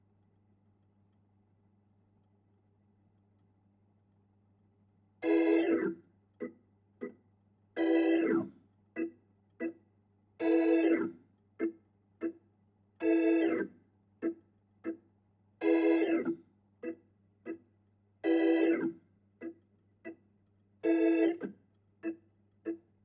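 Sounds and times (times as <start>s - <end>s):
Hammond organ: 5.2s - 6.0s, 7.8s - 9.8s, 10.4s - 11.7s, 13.0s - 13.7s, 15.6s - 17.0s, 18.2s - 18.9s, 20.8s - 22.2s.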